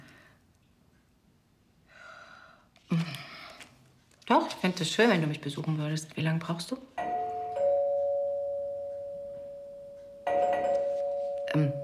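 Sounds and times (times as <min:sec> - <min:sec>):
speech: 0:04.3 - 0:06.9
doorbell ringing: 0:07.0 - 0:11.8.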